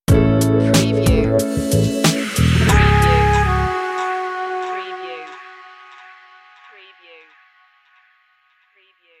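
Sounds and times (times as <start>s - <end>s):
jazz stinger: 0.2s - 6.8s.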